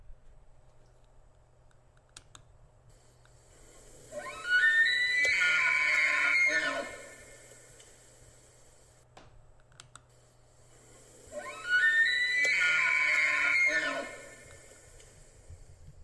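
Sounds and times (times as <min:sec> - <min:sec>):
elk bugle call: 0:03.5 - 0:08.8, 0:10.7 - 0:15.4.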